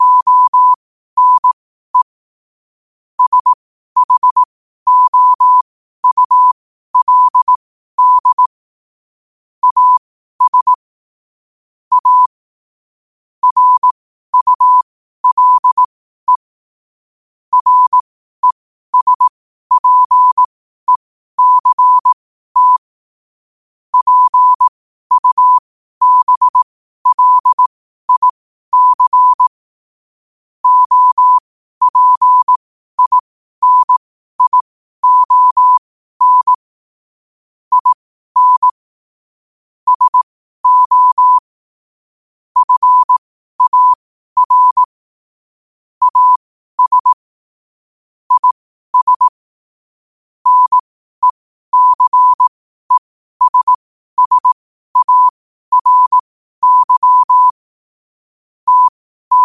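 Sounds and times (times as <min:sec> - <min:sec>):
morse code at 5 wpm: 0:00.0 - 0:02.2, 0:03.2 - 0:08.6, 0:09.6 - 0:10.8, 0:11.9 - 0:12.4, 0:13.4 - 0:16.5, 0:17.5 - 0:22.9, 0:23.9 - 0:29.6, 0:30.6 - 0:36.7, 0:37.7 - 0:38.8, 0:39.9 - 0:41.5, 0:42.6 - 0:45.0, 0:46.0 - 0:47.3, 0:48.3 - 0:49.4, 0:50.4 - 0:57.6, 0:58.6 - 0:59.4.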